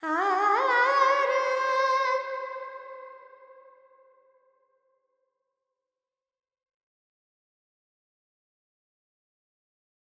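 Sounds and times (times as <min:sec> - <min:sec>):
woman singing Carnatic alap in raga Charukesi with reverb: 0:00.0 - 0:02.6.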